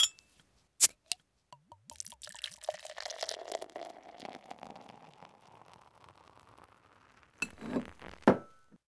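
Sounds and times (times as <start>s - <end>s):
beer being opened: 1.9s - 8.5s.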